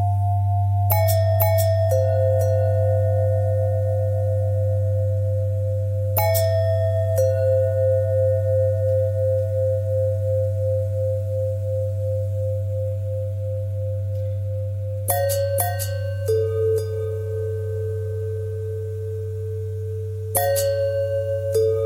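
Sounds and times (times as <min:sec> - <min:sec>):
long bending bell tones: 0:00.0 - 0:21.8.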